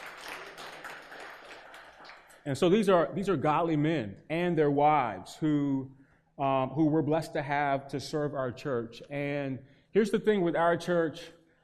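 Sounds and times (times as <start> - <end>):
church audience applause: 0.0 - 2.4
speech: 2.4 - 11.4.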